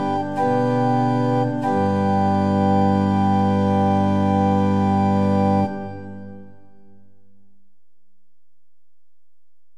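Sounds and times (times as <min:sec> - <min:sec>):
liturgical organ music at pitch 440 in equal temperament: 0:00.0 - 0:07.0.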